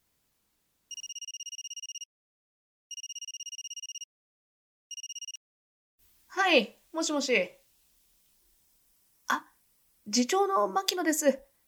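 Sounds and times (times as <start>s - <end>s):
mobile phone ringing: 0.9s - 2.1s, 2.9s - 4.1s, 4.9s - 5.4s
speech: 6.4s - 7.6s, 10.1s - 11.5s.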